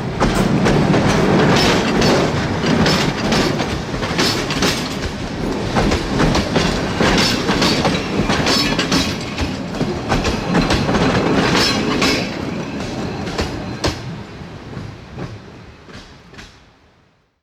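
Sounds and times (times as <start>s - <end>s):
wheels over rail joints: 0.2s - 14.1s.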